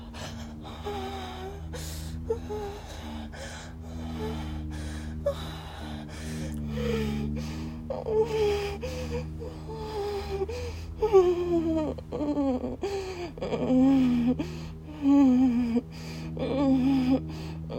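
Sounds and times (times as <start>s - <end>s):
person moaning: 0.0s - 17.7s
person whimpering: 0.0s - 17.7s.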